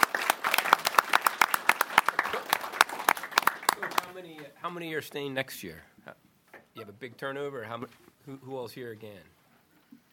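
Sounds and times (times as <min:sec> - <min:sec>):
small audience applause: 0:00.0 - 0:04.6
speech: 0:04.6 - 0:09.4.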